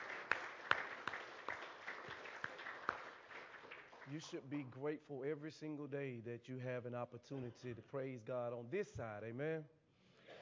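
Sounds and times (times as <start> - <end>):
people clapping hands: 0.0 - 4.8
speech: 4.1 - 9.8.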